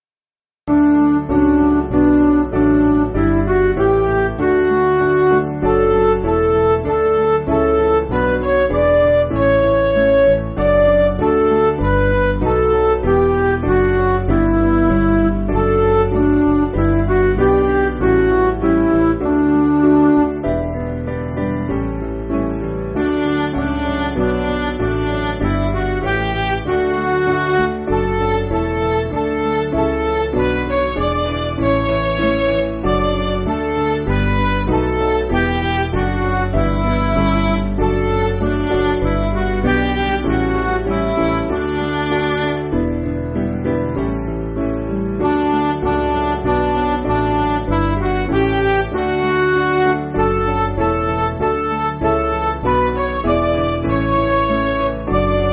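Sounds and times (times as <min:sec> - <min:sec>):
backing music for churches: 0:00.7 - 0:55.5.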